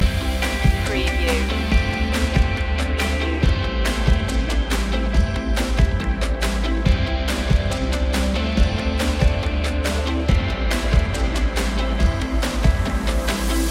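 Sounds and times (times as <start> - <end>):
music loop: 0.0 - 13.6.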